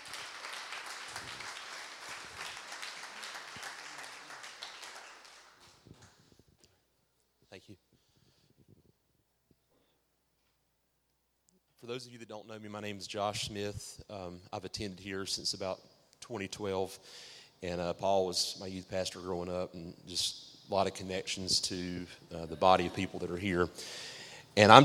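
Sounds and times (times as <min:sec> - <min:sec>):
audience applauding: 0:00.0 - 0:05.8
soft room noises: 0:00.0 - 0:24.8
speech: 0:11.8 - 0:24.8.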